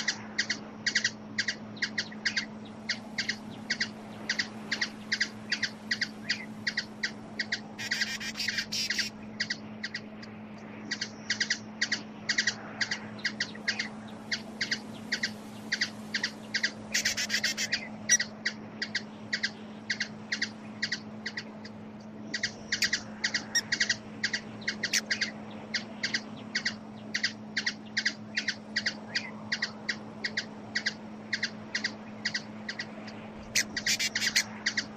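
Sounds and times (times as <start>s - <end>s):
hummingbird calls: 0.0s - 34.9s.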